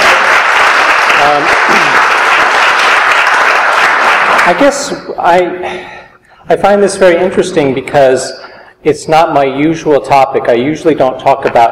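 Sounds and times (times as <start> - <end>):
audience applause: 0.0 - 4.7
speech: 1.3 - 2.0, 4.5 - 11.7.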